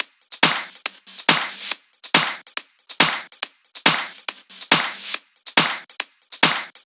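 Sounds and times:
basic drum loop at 140 BPM: 0.0s - 6.8s.

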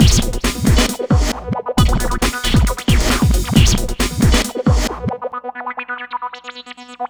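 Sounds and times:
hardcore breakbeat in B minor: 0.0s - 5.3s.

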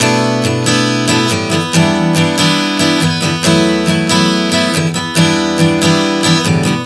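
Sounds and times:
acoustic guitar chord progressions in B minor: 0.0s - 6.8s.

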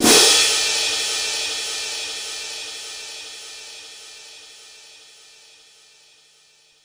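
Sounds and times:
Korg 05R-W orchestral cymbal crash: 0.0s - 4.1s.

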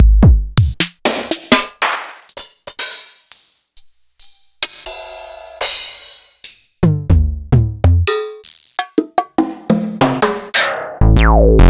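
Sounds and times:
303 drum machine: 0.0s - 4.8s, 5.6s - 11.6s.

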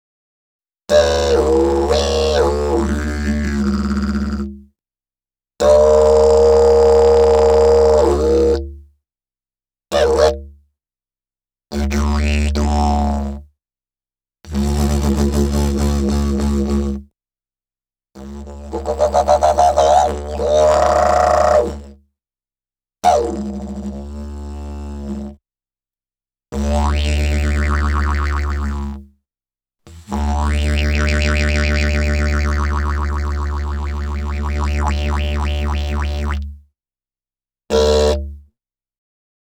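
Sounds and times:
didgeridoo: 0.9s - 4.6s, 5.6s - 8.7s, 9.9s - 10.5s, 11.8s - 13.4s, 14.5s - 17.0s, 18.2s - 22.0s, 23.0s - 25.4s, 26.6s - 29.0s, 29.9s - 36.5s, 37.7s - 38.4s.

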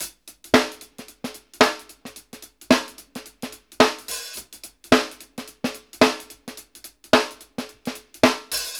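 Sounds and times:
sixteenth-note shuffle drum groove: 0.0s - 8.7s.

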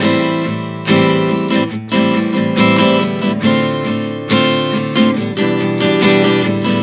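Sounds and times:
acoustic guitar chord progression Am7 Dm7 Em7: 0.0s - 6.8s.

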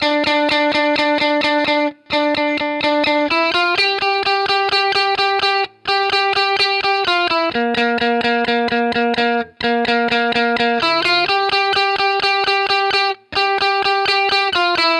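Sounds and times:
70s guitar lead in D minor at 128 bpm: 0.0s - 14.9s.

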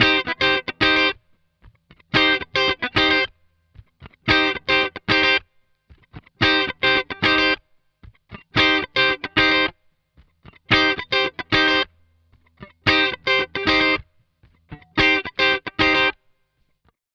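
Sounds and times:
funk guitar at 112 BPM in C: 0.0s - 16.4s.

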